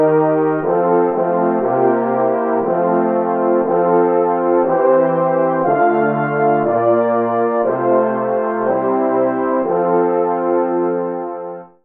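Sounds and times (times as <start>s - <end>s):
French horn in F major: 0.0s - 11.8s.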